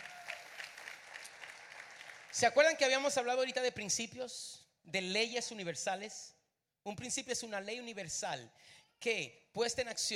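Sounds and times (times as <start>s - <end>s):
audience applause: 0.0s - 2.4s
speech: 2.4s - 10.1s.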